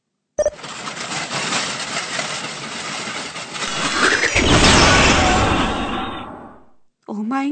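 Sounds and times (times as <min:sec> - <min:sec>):
cleaning robot clicking on and whirring: 0:03.5 - 0:05.5
cleaning robot blowing up with roaring rush: 0:03.6 - 0:06.9.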